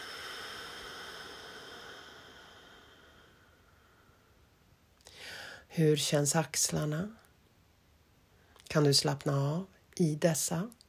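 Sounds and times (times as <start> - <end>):
long slow exhalation during a guided relaxation exercise: 0.0 - 4.5
speech: 5.8 - 7.2, 8.7 - 10.8.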